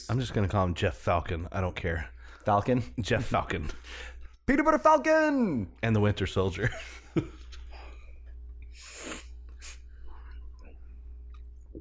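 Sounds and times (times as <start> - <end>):
speech: 0.0 - 7.4
sniffing into the microphone: 8.8 - 9.9.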